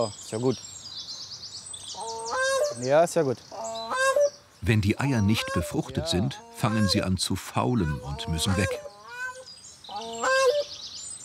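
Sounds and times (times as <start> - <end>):
speech: 0.0 - 0.8, 2.8 - 3.6, 4.6 - 8.9
aggressive brooding birds guarding eggs honking: 1.9 - 10.8.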